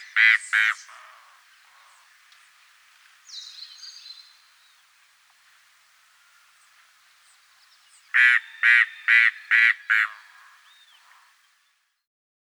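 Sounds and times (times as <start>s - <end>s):
Mangrove Cuckoo calling in Guadeloupe: 8.2s - 11.3s.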